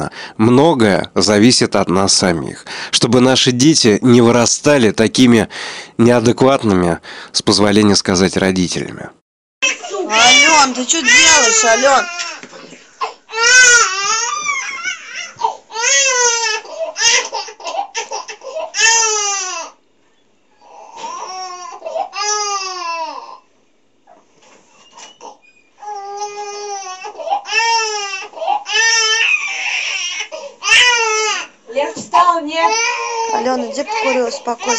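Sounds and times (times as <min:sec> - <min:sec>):
speech: 0:00.0 - 0:12.4, 0:33.4 - 0:34.7
infant wailing: 0:09.6 - 0:19.8, 0:20.6 - 0:23.5, 0:25.2 - 0:31.6, 0:32.5 - 0:34.7.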